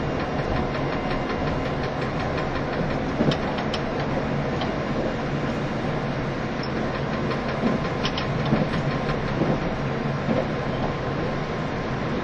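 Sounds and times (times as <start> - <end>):
train running with continuous low rumble and roar: 0.0 - 12.2
sharp clicks and knocks: 0.2 - 5.1, 6.6 - 9.7.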